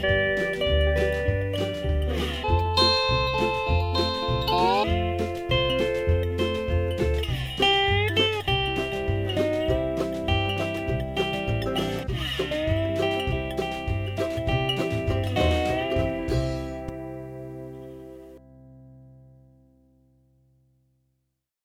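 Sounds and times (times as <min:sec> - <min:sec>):
dobro: 0:00.0 - 0:19.0.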